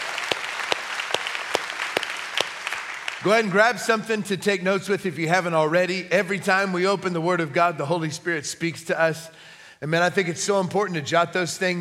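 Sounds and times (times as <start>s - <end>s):
church congregation applauding: 0.0s - 3.8s
speech: 3.2s - 11.8s.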